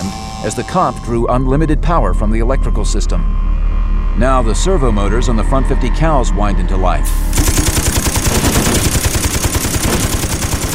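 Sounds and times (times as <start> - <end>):
speech: 0.4 - 3.6, 4.2 - 7.5
machine gun firing: 7.3 - 10.7.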